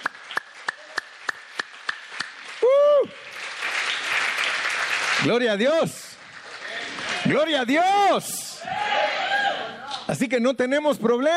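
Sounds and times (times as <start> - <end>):
audience clapping hands: 0.0 - 8.2
speech: 5.2 - 6.1, 7.2 - 8.4, 10.2 - 11.3.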